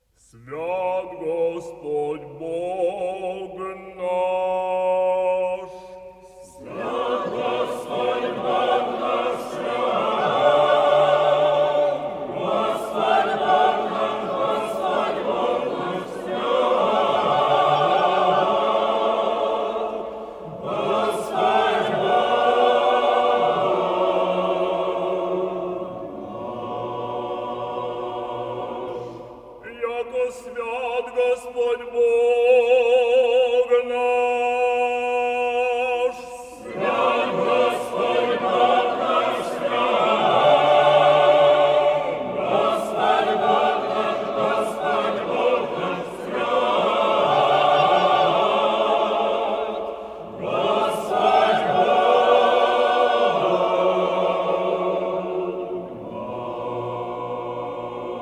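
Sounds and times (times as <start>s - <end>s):
hierarchal choir singing: 0.0s - 58.2s.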